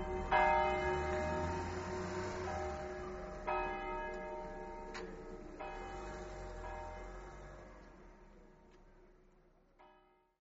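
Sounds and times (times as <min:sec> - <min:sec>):
bells ringing: 0:00.0 - 0:07.7.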